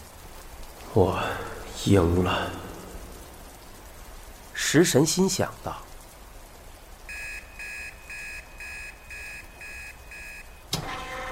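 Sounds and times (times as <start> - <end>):
speech: 1.0 - 2.6, 4.7 - 5.9
detention center entry alarm ringing in electronic pulses: 7.1 - 11.3.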